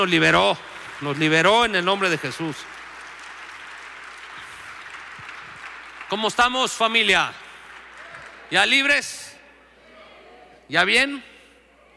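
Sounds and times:
speech: 0:00.0 - 0:02.7, 0:06.1 - 0:07.4, 0:08.5 - 0:09.2, 0:10.7 - 0:11.3
audience applauding: 0:00.0 - 0:09.1.

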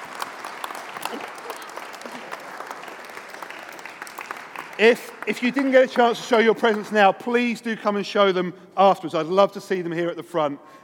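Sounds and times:
audience applause for children: 0:00.0 - 0:07.1
speech: 0:04.8 - 0:10.8.

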